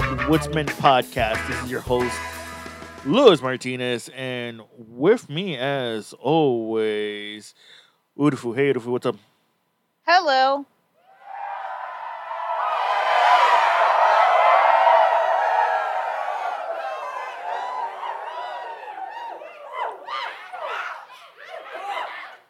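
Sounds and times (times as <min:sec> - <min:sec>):
speech: 0:00.3 - 0:02.4, 0:03.0 - 0:09.3, 0:10.1 - 0:10.7
studio audience cheering and chuckling: 0:11.2 - 0:22.4.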